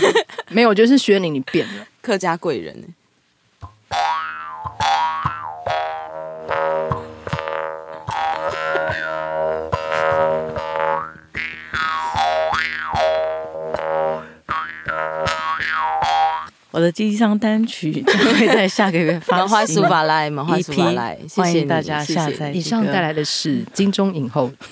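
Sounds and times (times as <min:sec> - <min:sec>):
laughter: 0:00.0 - 0:00.6, 0:08.0 - 0:09.1, 0:18.0 - 0:21.1
speech: 0:00.0 - 0:03.0, 0:16.7 - 0:24.7
Atayal mouth harp played: 0:03.6 - 0:16.5.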